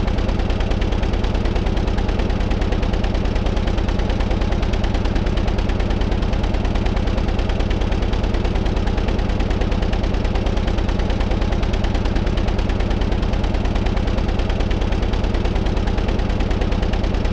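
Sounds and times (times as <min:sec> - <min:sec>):
large industrial motor engine running: 0:00.0 - 0:17.3.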